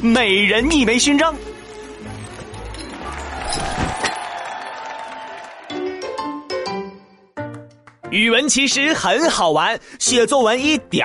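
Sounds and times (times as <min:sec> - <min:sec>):
speech: 0:00.0 - 0:01.5, 0:08.1 - 0:11.0
audience applause: 0:01.7 - 0:06.2
crowd noise: 0:02.1 - 0:06.1.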